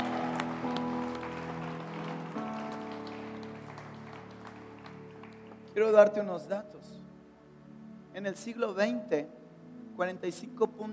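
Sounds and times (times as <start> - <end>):
audience applause: 0.0 - 5.7
speech: 5.8 - 7.1, 8.2 - 9.4, 10.0 - 10.9.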